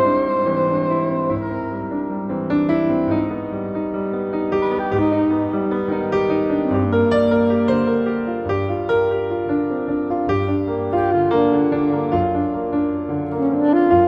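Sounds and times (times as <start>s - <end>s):
soprano saxophone: 0.0s - 3.6s, 4.3s - 8.0s, 10.4s - 14.0s
piano: 0.0s - 14.0s.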